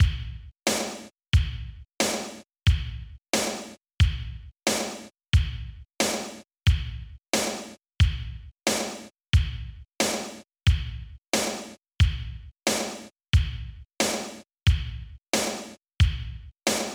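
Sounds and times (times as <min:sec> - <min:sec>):
kick and snare drums: 0:00.0 - 0:16.9.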